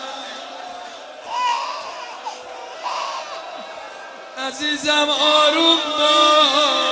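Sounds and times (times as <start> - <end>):
baby crying: 1.2 - 3.8
speech: 4.5 - 6.7.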